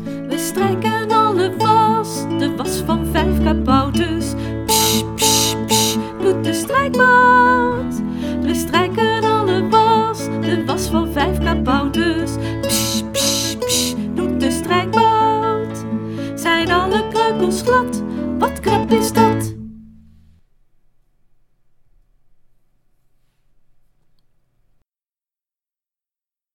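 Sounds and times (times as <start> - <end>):
song with singing: 0.3 - 19.5.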